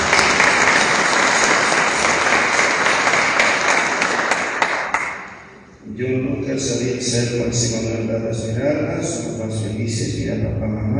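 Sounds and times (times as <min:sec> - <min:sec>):
loud applause for parents and godparents: 0:00.0 - 0:05.6
speech: 0:07.0 - 0:10.9.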